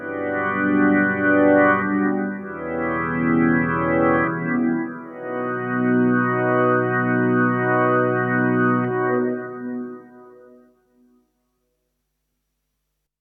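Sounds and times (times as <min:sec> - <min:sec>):
organ swell through Strymon Big Sky reverb: 0:00.0 - 0:09.9.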